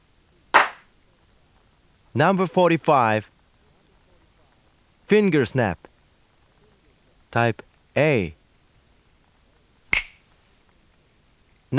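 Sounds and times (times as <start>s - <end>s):
hand clap sound effect type C: 0.6s - 0.9s
speech: 2.2s - 3.3s, 5.1s - 5.9s, 7.3s - 8.4s.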